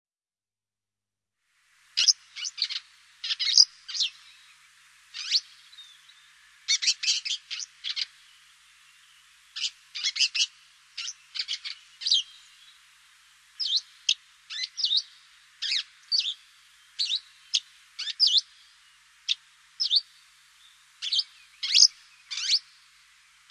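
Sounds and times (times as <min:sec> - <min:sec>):
swallow twittering calls: 0:02.0 - 0:12.8, 0:13.6 - 0:18.7, 0:19.3 - 0:20.1, 0:21.0 - 0:22.8.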